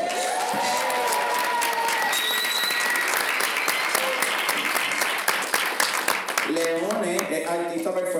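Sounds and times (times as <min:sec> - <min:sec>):
whoops and cheers: 0:00.0 - 0:04.4
audience applause: 0:00.0 - 0:08.0.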